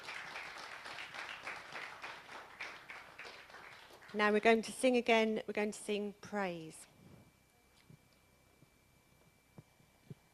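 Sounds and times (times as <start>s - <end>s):
audience clapping for actors: 0.0s - 4.4s
speech: 4.1s - 6.9s.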